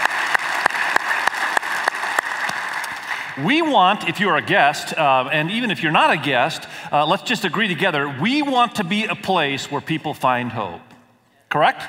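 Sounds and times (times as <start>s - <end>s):
church audience applause: 0.0s - 3.4s
speech: 3.4s - 10.9s, 11.5s - 11.8s.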